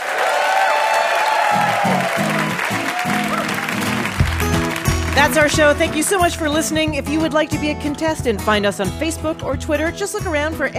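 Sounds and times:
whoops and cheers: 0.0s - 4.3s
audience applause: 0.0s - 6.4s
low musical notes: 1.6s - 10.7s
speech: 5.2s - 10.7s.

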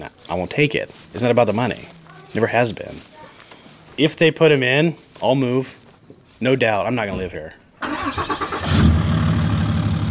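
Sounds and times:
speech: 0.0s - 3.2s, 4.0s - 5.8s, 6.4s - 8.2s
car engine while driving: 7.2s - 10.1s.

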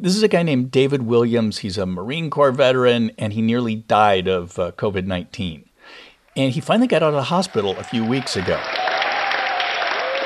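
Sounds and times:
speech: 0.0s - 9.0s
hospital staff applauding a patient leaving the hospital: 6.3s - 10.2s
hospital staff cheering a patient leaving the hospital: 6.3s - 10.2s.

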